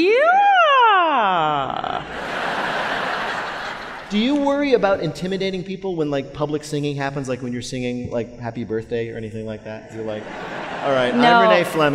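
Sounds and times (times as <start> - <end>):
voice imitating a siren: 0.0 - 2.1
laughter: 1.7 - 4.6, 10.0 - 11.9
speech: 4.1 - 11.9.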